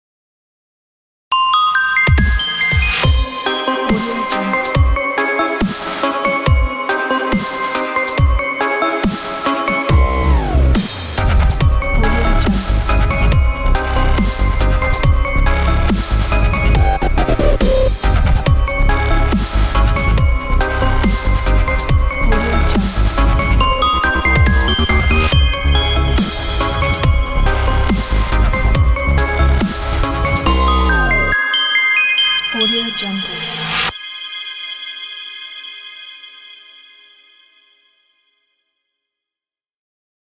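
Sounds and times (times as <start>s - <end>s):
scary bells: 1.4s - 38.6s
dubstep music: 2.2s - 31.6s, 32.2s - 34.0s.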